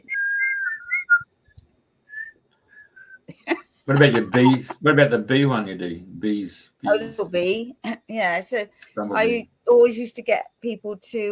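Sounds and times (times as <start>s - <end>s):
person whistling with their lips: 0.0s - 1.3s, 2.1s - 3.3s
laughter: 3.3s - 5.0s
speech: 3.9s - 11.3s.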